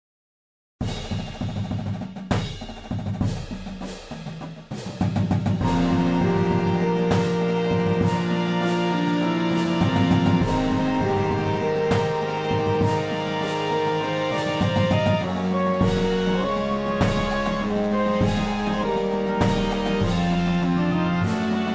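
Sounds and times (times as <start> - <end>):
fanfare percussion: 0.8 - 21.7.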